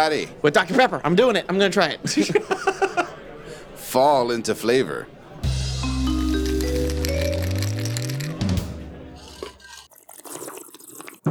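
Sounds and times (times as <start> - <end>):
speech: 0.0 - 2.9, 3.9 - 5.2
laughter: 2.0 - 3.9
sipping a hot drink: 5.8 - 11.2.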